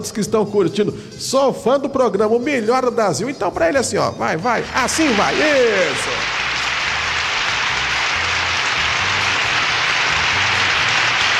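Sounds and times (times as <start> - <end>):
speech: 0.0 - 6.4
clapping applause: 4.6 - 11.3.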